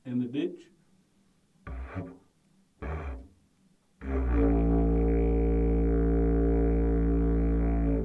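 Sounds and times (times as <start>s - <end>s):
didgeridoo played slowly with lips at the front of the mouth: 1.7s - 2.2s, 2.8s - 3.3s, 4.0s - 8.0s.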